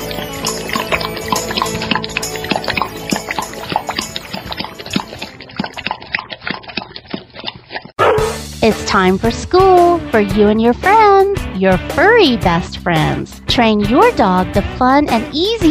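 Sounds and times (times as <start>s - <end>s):
water pouring and splashing: 0.0s - 8.0s
speech: 8.7s - 15.7s.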